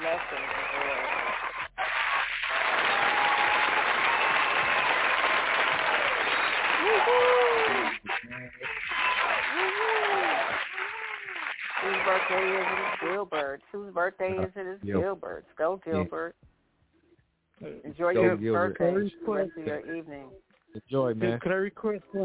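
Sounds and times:
audience clapping and cheering: 0:00.0 - 0:13.5
voices calling out and whooping: 0:00.3 - 0:13.2
speech: 0:13.6 - 0:16.4, 0:17.6 - 0:22.2.

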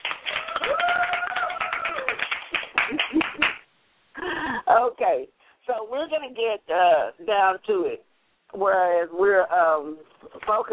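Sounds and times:
round of applause: 0:00.0 - 0:03.6
speech: 0:04.8 - 0:10.7.

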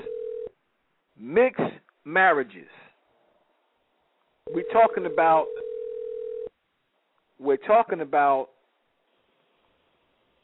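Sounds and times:
telephone tone: 0:00.0 - 0:00.5, 0:04.5 - 0:06.5
speech: 0:01.2 - 0:02.8, 0:04.5 - 0:05.6, 0:07.4 - 0:08.5.

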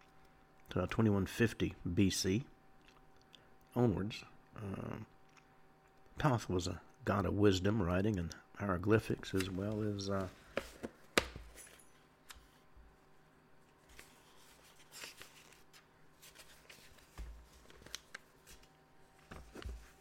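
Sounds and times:
speech: 0:00.7 - 0:02.5, 0:03.8 - 0:05.2, 0:06.2 - 0:10.9
papers being shuffled and rustled: 0:09.2 - 0:12.7, 0:13.6 - 0:19.9.

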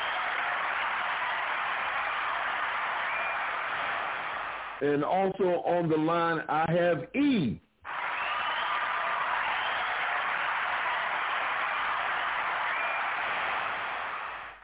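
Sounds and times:
hand claps of praise: 0:00.0 - 0:04.8, 0:07.9 - 0:14.6
speech: 0:04.8 - 0:07.6.

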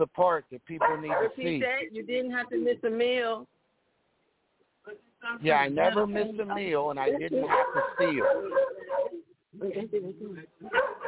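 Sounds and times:
speech: 0:00.0 - 0:03.6, 0:04.8 - 0:11.0
dog barking: 0:00.8 - 0:01.6, 0:07.4 - 0:09.2, 0:10.6 - 0:11.0.

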